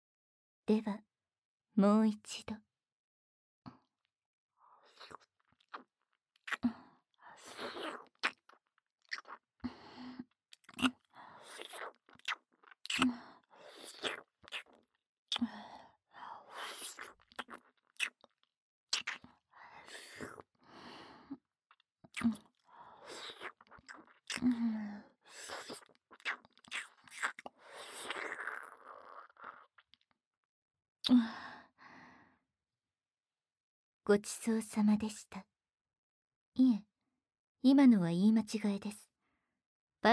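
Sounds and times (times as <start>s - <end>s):
speech: 0.7s - 1.1s, 1.8s - 2.6s, 34.1s - 35.5s, 36.6s - 36.9s, 37.6s - 39.0s
wet tongue and saliva mouth sounds: 4.9s - 6.7s, 7.4s - 9.4s, 10.2s - 15.6s, 16.5s - 19.3s, 19.9s - 20.4s, 22.1s - 24.6s, 25.3s - 29.9s.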